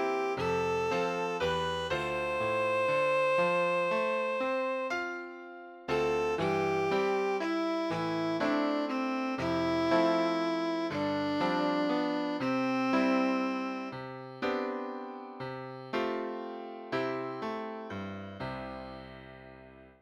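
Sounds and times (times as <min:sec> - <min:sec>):
violin: 0:00.0 - 0:05.2, 0:05.9 - 0:14.6
piano: 0:00.0 - 0:20.0.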